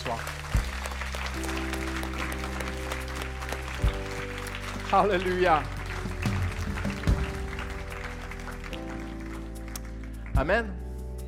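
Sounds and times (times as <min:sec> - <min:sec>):
audience applause: 0:00.0 - 0:10.4
speech: 0:04.9 - 0:05.8, 0:10.4 - 0:10.8.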